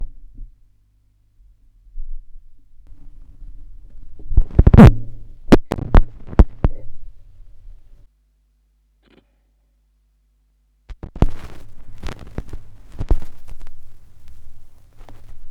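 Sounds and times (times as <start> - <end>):
vinyl record noise: 2.8 - 8.0, 10.9 - 15.5.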